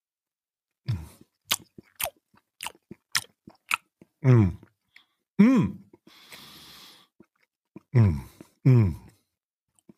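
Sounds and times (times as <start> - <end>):
chewing and smacking while eating moist Vanillekipferl-flavoured cake from a jar: 1.1 - 5.1, 7.2 - 8.6, 9.7 - 9.9
speech: 4.2 - 4.6, 5.4 - 5.8.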